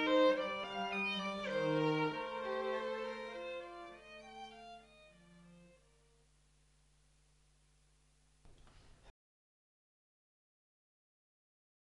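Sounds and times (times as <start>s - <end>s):
strings double concerto: 0.0s - 6.3s.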